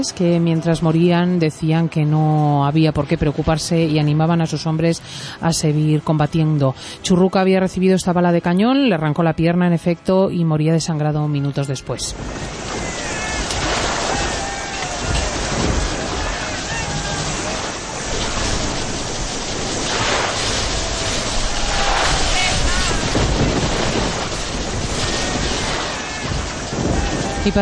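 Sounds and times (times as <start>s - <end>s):
speech: 0.0s - 12.6s, 27.4s - 27.6s
storm at sea sound effects: 12.1s - 27.6s.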